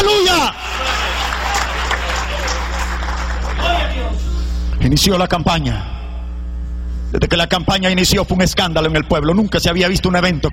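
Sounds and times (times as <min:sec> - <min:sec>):
people shouting and cheering: 0:00.0 - 0:02.9, 0:03.5 - 0:04.3
low electrical hum: 0:00.0 - 0:10.5
audience applauding: 0:00.6 - 0:04.2
speech: 0:04.9 - 0:06.0, 0:07.1 - 0:10.5.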